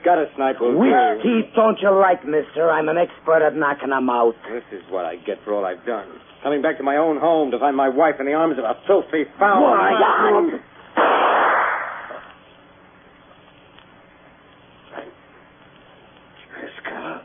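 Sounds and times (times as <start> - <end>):
speech: 0.1 - 11.1
gunshot: 11.0 - 12.3.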